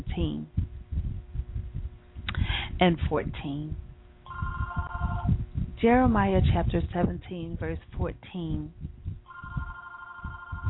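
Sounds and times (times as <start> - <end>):
speech: 0.2 - 0.6, 2.8 - 3.8, 5.8 - 8.9
low thumps: 0.5 - 2.3, 3.2 - 10.6
mobile phone ringing: 4.3 - 5.3, 9.3 - 10.6.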